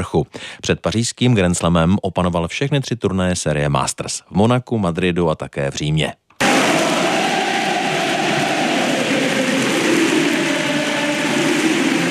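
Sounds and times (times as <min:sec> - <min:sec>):
speech: 0:00.0 - 0:06.7
crowd roaring and cheering at a tennis victory: 0:06.4 - 0:12.0.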